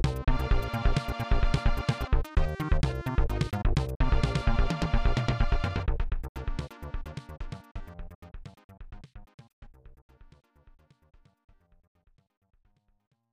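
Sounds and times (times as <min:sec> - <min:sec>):
level game music: 0:00.0 - 0:08.1.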